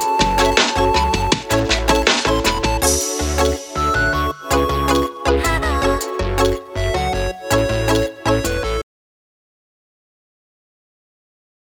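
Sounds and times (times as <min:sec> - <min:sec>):
synth pop music: 0:00.0 - 0:08.8.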